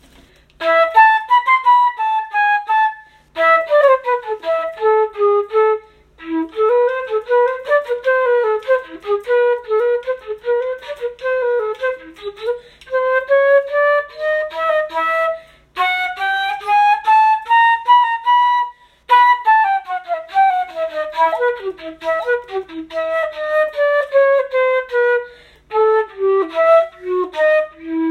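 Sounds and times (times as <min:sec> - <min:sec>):
flute: 0:00.6 - 0:28.0.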